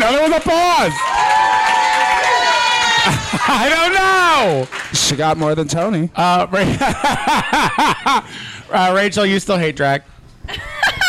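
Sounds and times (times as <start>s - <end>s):
high sustained shouts: 0.0s - 4.7s
audience cheering and whooping: 0.0s - 4.9s
speech: 0.1s - 1.4s, 3.4s - 10.6s
laughter: 2.9s - 3.9s, 6.6s - 8.3s, 10.5s - 11.0s.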